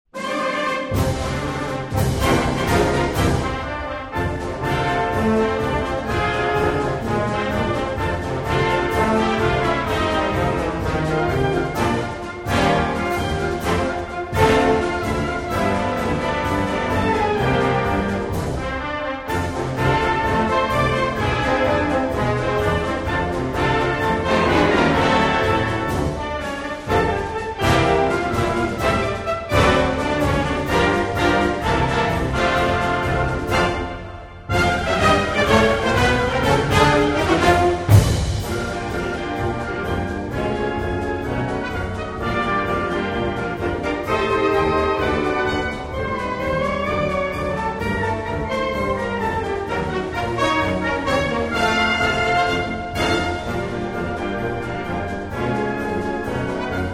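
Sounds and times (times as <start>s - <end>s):
happy marching music: 0.2s - 56.9s.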